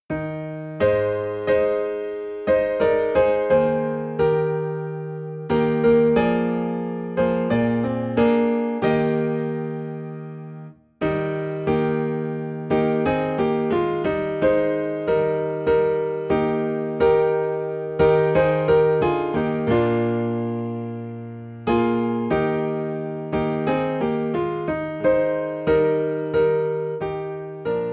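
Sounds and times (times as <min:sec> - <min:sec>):
piano piece in E flat: 0:00.0 - 0:27.9.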